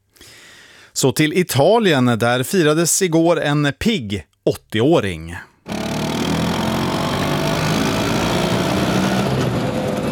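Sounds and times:
speech: 0:01.0 - 0:05.8
Vespa moped engine running: 0:05.7 - 0:10.0.

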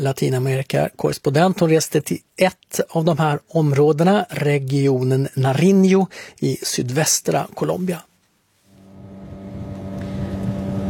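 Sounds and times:
speech: 0:00.0 - 0:08.1
boat engine droning on the Patía river near Tumaco, Colombia: 0:08.8 - 0:10.8.

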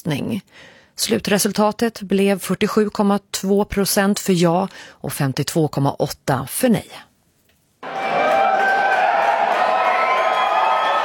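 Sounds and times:
speech: 0:00.0 - 0:07.1
crowd cheering at election night party: 0:07.8 - 0:11.0.

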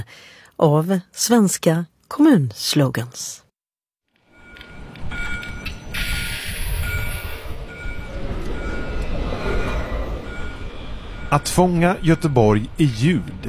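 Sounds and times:
speech: 0:00.0 - 0:03.4, 0:11.3 - 0:13.4
blue and white trams rattling and lurching on tracks: 0:04.3 - 0:13.4.

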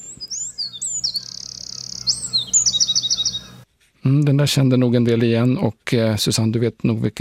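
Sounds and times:
Eurasian wren whistled notes and fast trills: 0:00.0 - 0:03.6
speech: 0:04.0 - 0:07.1.

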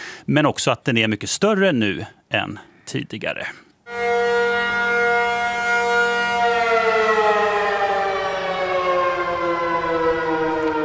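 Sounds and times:
speech: 0:00.3 - 0:03.6
civil defense all-clear siren: 0:03.9 - 0:10.8.

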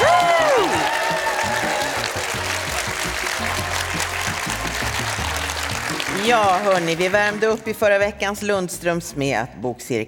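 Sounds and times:
audience applause at a live seminar: 0:00.0 - 0:07.5
speech: 0:06.3 - 0:10.0.

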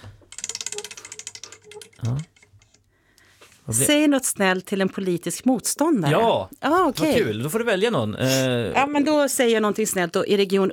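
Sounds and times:
spinning prize wheel clicking: 0:00.2 - 0:02.9
speech: 0:02.0 - 0:02.3, 0:03.7 - 0:10.7.

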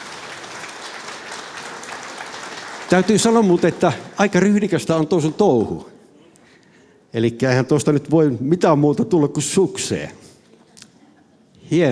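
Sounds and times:
audience applause welcoming a singer onto the stage: 0:00.0 - 0:05.4
speech: 0:02.9 - 0:05.9, 0:07.1 - 0:10.2, 0:11.7 - 0:11.9.

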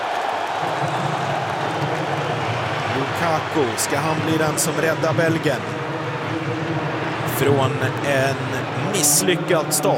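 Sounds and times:
World Cup football crowd reacting as Romelu Lukaku comes on for Belgium: 0:00.0 - 0:09.9
speech: 0:03.2 - 0:05.8, 0:07.4 - 0:09.9.

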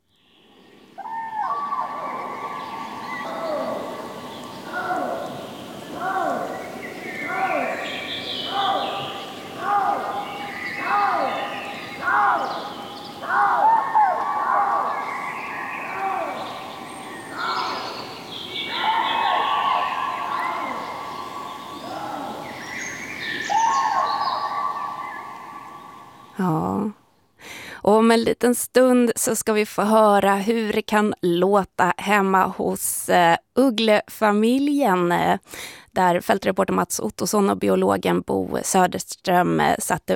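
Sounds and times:
lynx harsh wailing cries at night: 0:01.0 - 0:25.2
common crane trumpeting calls at night: 0:01.0 - 0:26.3
speech: 0:28.1 - 0:40.1.

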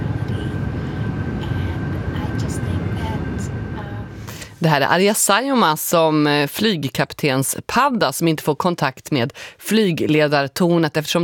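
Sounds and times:
airliner descending, low drone: 0:00.0 - 0:04.8
soft voices: 0:00.0 - 0:04.9
speech: 0:04.6 - 0:11.2.

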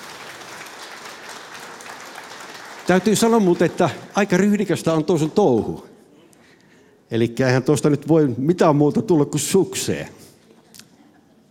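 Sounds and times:
audience clapping for a singer walking onto the stage in a contest: 0:00.0 - 0:05.7
speech: 0:02.9 - 0:05.9, 0:07.1 - 0:10.2.

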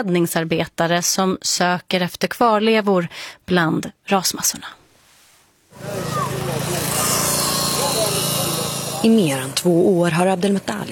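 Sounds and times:
speech: 0:00.0 - 0:04.8, 0:09.0 - 0:10.9
saw cutting through iron bars and rebar: 0:05.8 - 0:10.5.

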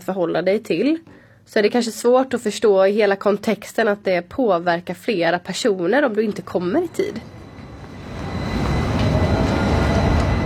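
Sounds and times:
speech: 0:00.0 - 0:07.4
tram riding along rails: 0:06.5 - 0:10.4.

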